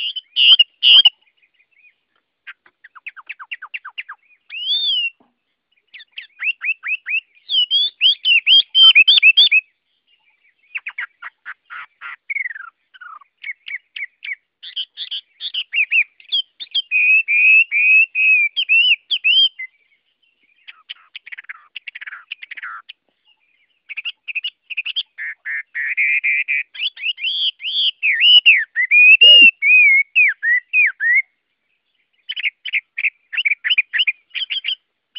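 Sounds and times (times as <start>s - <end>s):
Chinese hwamei singing: 0.0s - 35.1s.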